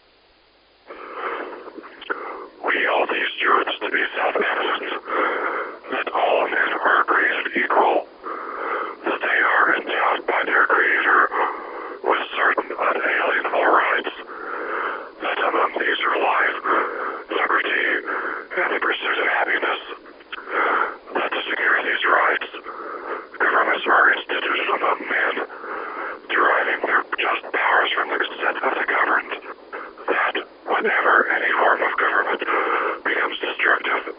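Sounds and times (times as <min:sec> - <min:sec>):
person whispering: 0:00.9 - 0:08.1, 0:08.7 - 0:34.1.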